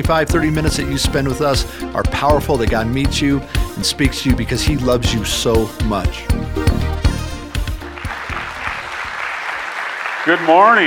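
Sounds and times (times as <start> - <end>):
speech: 0.0 - 7.1, 10.3 - 10.8
crowd clapping: 7.5 - 10.8.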